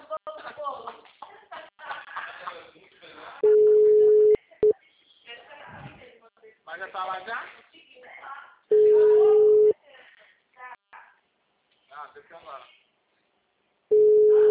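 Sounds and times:
laughter: 0.0s - 3.5s
telephone ringback tone while a call waits to be answered: 3.4s - 4.4s, 8.7s - 9.7s, 13.9s - 14.4s
speech: 7.0s - 7.6s.

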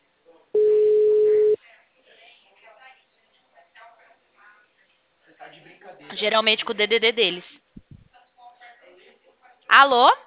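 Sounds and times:
telephone tone while placing a call to a bank number: 0.6s - 1.6s
quiet talk: 1.3s - 6.3s, 7.4s - 10.2s
speech: 6.2s - 7.6s, 9.8s - 10.2s.

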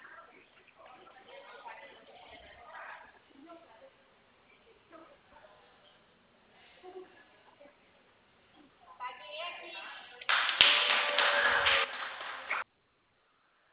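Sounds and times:
office staff clapping hands: 10.2s - 12.7s.

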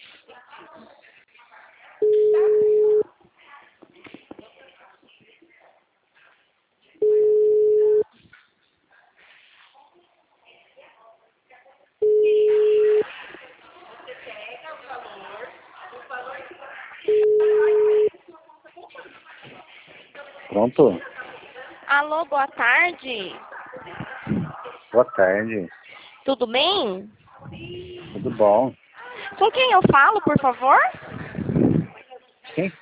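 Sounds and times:
faint voices murmuring: 0.0s - 32.8s
ringback tone of an outgoing telephone call: 2.0s - 3.0s, 7.0s - 8.0s, 17.1s - 18.1s
speech: 20.6s - 21.1s, 22.0s - 24.0s, 24.9s - 28.8s, 29.4s - 31.0s, 32.6s - 32.8s.

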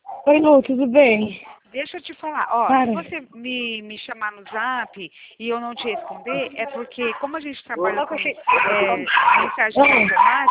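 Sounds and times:
dog barking and yipping: 0.0s - 0.4s, 4.4s - 5.0s, 5.6s - 10.4s
speech: 0.2s - 10.4s.

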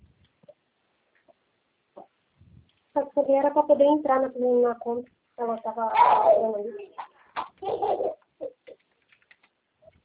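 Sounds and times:
speech: 3.2s - 7.0s
baby babbling while playing: 5.9s - 8.7s.

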